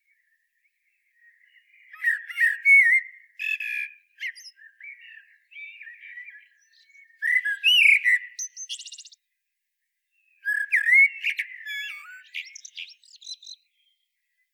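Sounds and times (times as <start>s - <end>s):
common blackbird singing: 0.1s - 9.3s, 10.1s - 14.4s.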